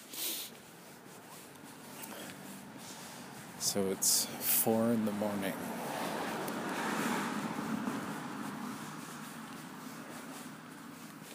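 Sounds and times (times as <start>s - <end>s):
car driving around at four in the morning: 0.0s - 11.3s
wind buffeting: 2.7s - 11.0s
speech: 3.6s - 5.9s.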